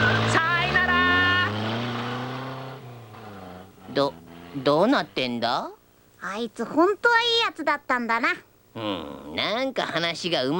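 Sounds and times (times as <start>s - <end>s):
car engine droning: 0.0s - 5.6s
speech: 4.0s - 10.5s.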